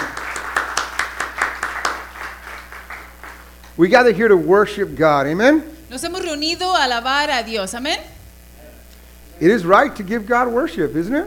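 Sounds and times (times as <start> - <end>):
audience applause: 0.0 - 3.7
speech: 3.8 - 8.1, 9.4 - 11.2.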